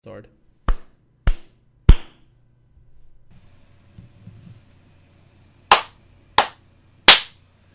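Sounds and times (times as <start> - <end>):
speech: 0.0 - 0.4
rhythmic hand clapping: 0.6 - 2.3, 5.7 - 7.4.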